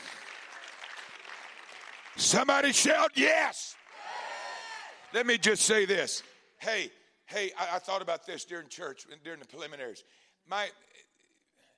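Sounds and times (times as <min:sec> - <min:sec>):
audience clapping hands: 0:00.0 - 0:06.5
speech: 0:02.2 - 0:03.8, 0:05.1 - 0:11.0.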